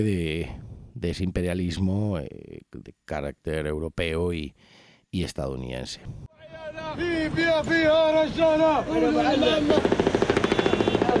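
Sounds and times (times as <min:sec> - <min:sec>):
speech: 0:00.0 - 0:11.1
Libyans shouting and cheering celebrating the fall and death of Gaddafi: 0:06.4 - 0:10.0
celebratory automatic gunfire fired into the air: 0:09.6 - 0:11.1.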